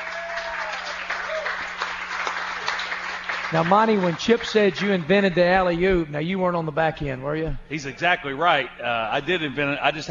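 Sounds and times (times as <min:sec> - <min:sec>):
audience round of applause: 0:00.0 - 0:05.2
speech: 0:03.5 - 0:10.0.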